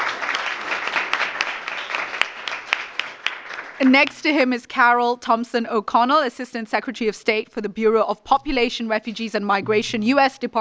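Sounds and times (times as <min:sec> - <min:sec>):
audience applause: 0:00.0 - 0:04.2
speech: 0:03.8 - 0:10.5.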